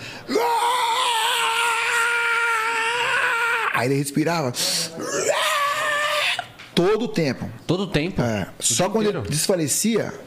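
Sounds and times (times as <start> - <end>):
voice imitating a boy's constant screaming: 0.3 - 3.9, 5.0 - 6.6
speech: 3.8 - 5.2, 6.8 - 10.2.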